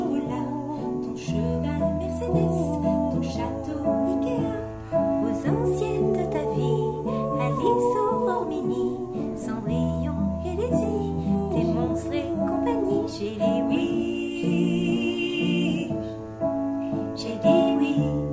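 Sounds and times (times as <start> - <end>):
two women's voices: 0.0 - 16.1, 17.2 - 18.2.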